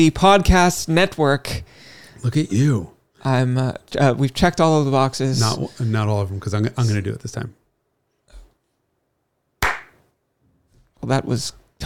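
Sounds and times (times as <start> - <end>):
speech: 0.0 - 7.6, 11.0 - 11.8
hand clap: 9.6 - 10.0.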